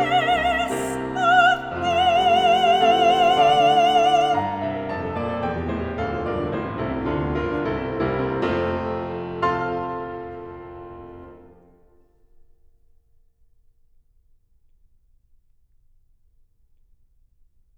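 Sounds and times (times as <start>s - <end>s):
person singing: 0.0s - 4.6s
piano: 0.0s - 12.4s.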